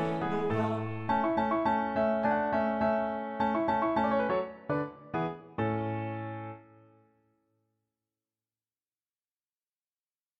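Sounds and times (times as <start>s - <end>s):
voice and piano song: 0.0s - 7.0s.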